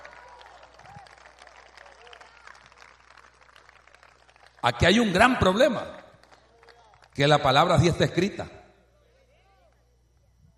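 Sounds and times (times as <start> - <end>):
audience applauding: 0.0 - 7.8
speech: 4.6 - 6.0, 7.2 - 8.6.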